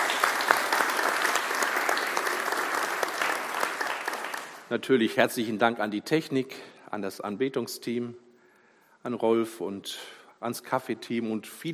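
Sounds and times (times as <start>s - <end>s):
audience applause: 0.0s - 4.7s
speech: 4.7s - 8.2s, 9.0s - 11.7s.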